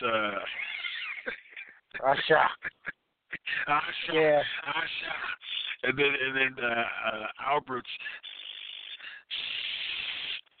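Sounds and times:
speech: 0.0 - 0.7, 2.1 - 2.7, 3.7 - 8.3
voice imitating hissing: 8.0 - 10.5.

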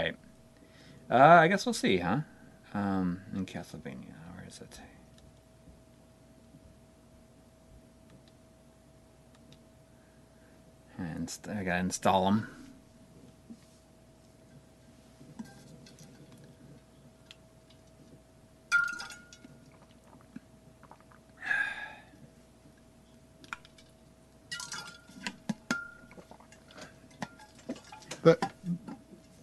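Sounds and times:
low steady hum: 0.0 - 29.4
speech: 1.1 - 4.9, 11.2 - 12.6
ice cubes clinking in metal water bottle: 24.5 - 26.2.

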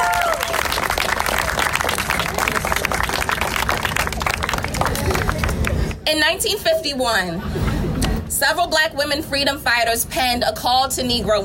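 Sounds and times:
audience applause: 0.0 - 6.0
speech: 6.2 - 7.7, 8.4 - 11.4.

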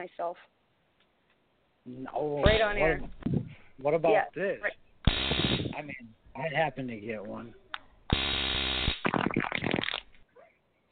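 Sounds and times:
speech: 0.0 - 0.6, 1.8 - 4.8, 5.6 - 8.4
taser being set off: 5.0 - 5.9, 8.1 - 10.1.

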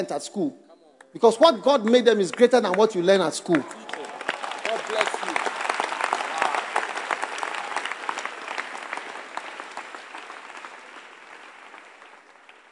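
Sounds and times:
speech: 0.0 - 3.9
children clapping: 3.5 - 12.7.

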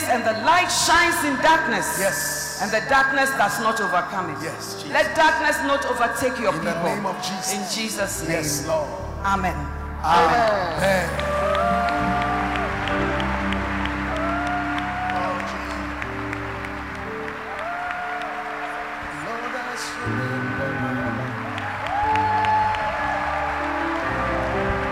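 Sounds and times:
speech: 0.1 - 11.3
audience clapping: 10.1 - 24.9.

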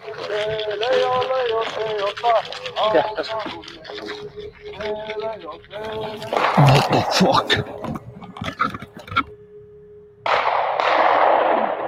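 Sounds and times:
laughter: 0.0 - 9.3
faint steady tone: 0.0 - 11.8
speech: 0.3 - 8.0
video game pistol shots: 10.3 - 11.8.

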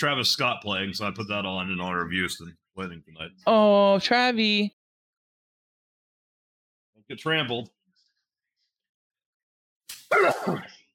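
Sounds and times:
speech: 0.0 - 4.8, 7.1 - 7.8, 10.1 - 10.8
person sneezing: 10.0 - 10.8.

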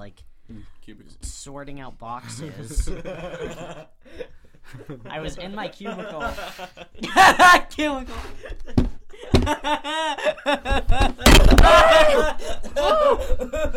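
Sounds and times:
speech: 0.0 - 8.6, 9.5 - 13.7
laughter: 2.2 - 13.7
microphone falling onto plate: 8.6 - 9.7, 10.7 - 12.1
plate shattering: 11.2 - 12.0.

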